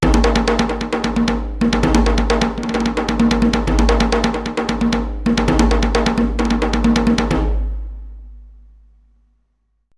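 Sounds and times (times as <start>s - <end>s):
djembe drumming: 0.0s - 7.8s.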